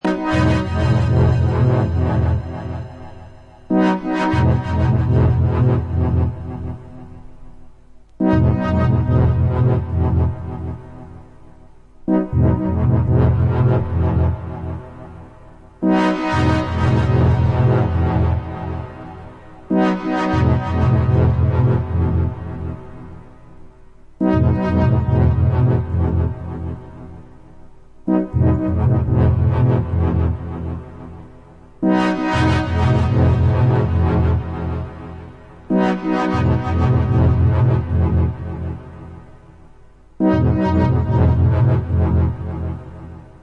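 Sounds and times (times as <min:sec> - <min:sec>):
ambient music: 0:00.0 - 0:43.4.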